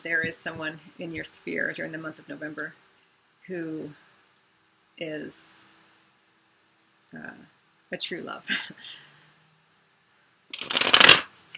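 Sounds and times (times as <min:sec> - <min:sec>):
speech: 0:00.0 - 0:04.0, 0:05.0 - 0:05.7, 0:07.1 - 0:09.1
cards being riffle shuffled for a reading: 0:10.5 - 0:11.5.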